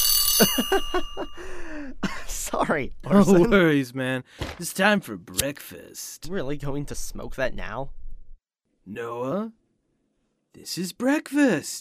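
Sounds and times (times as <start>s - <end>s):
alarm clock ringing: 0.0s - 1.6s
speech: 0.4s - 8.0s, 8.8s - 9.6s, 10.6s - 11.7s.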